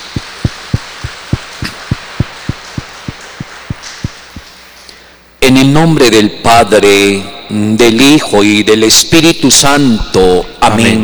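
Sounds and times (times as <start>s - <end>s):
applause in steady unison: 0.0s - 4.6s
low hiss: 0.0s - 11.0s
speech: 5.6s - 11.0s.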